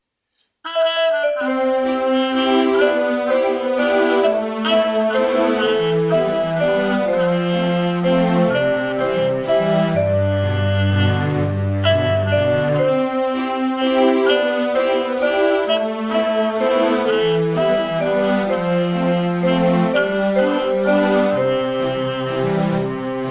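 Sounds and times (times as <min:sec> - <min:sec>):
waltz music: 0:00.7 - 0:23.2.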